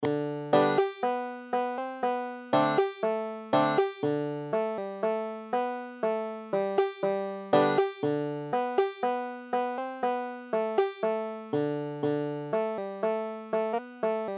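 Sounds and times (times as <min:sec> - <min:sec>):
banjo: 0:00.0 - 0:14.3.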